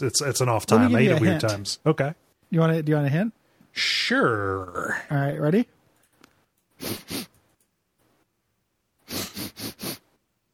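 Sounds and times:
speech: 0.0s - 5.8s, 6.8s - 7.4s
sniffing: 6.8s - 7.4s, 9.0s - 10.2s.

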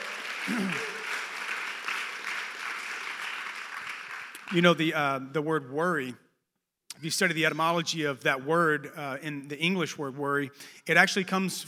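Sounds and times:
audience clapping hands: 0.0s - 5.0s
speech: 0.5s - 0.9s, 4.5s - 6.2s, 7.0s - 11.6s.

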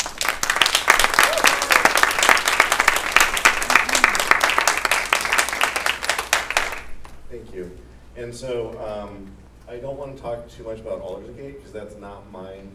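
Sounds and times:
crowd applause: 0.0s - 7.0s
speech: 7.6s - 12.7s.

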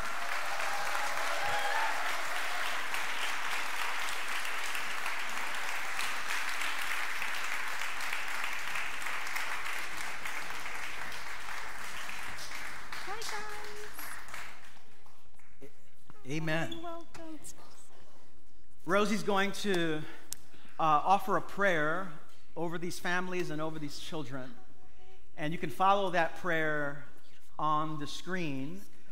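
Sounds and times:
crowd applauding: 0.0s - 15.2s
speech: 16.3s - 16.8s, 18.9s - 20.2s, 20.8s - 24.6s, 25.4s - 28.9s.

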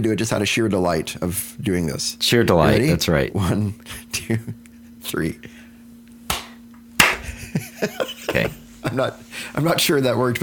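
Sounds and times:
speech: 0.0s - 5.6s, 7.6s - 10.4s
low steady hum: 0.0s - 10.4s
hand claps: 6.3s - 7.3s
laughter: 7.2s - 9.2s.

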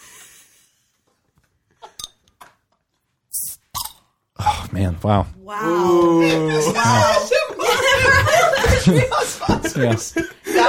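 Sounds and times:
metal cap twisted open on a glass bottle: 3.3s - 4.1s
speech: 4.8s - 7.3s, 8.0s - 10.6s
laughter: 5.7s - 10.6s.

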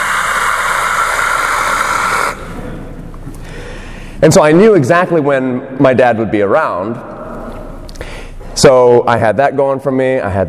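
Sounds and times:
voice imitating a faulty car's hissing whine: 0.0s - 2.5s
speech: 4.2s - 7.1s, 8.6s - 10.4s.

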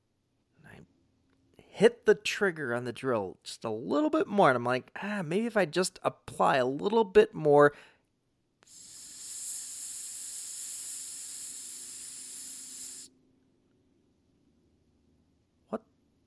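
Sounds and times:
speech: 1.8s - 7.9s
hissing: 8.6s - 13.1s.

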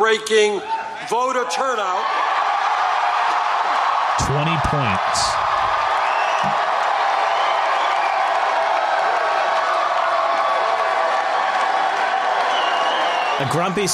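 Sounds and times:
speech: 0.1s - 2.2s, 4.2s - 5.6s, 13.4s - 13.9s
rally crowd cheering: 0.6s - 13.9s
rally crowd applauding: 2.0s - 13.9s.

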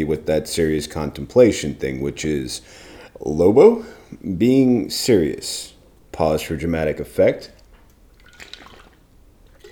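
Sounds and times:
speech: 0.0s - 7.6s
sipping coffee: 7.9s - 9.7s.

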